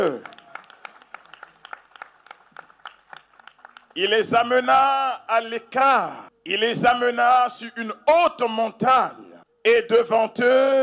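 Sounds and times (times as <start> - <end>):
speech: 0.0 - 0.4, 4.0 - 10.8
church congregation applauding during a French-language service: 0.0 - 4.2.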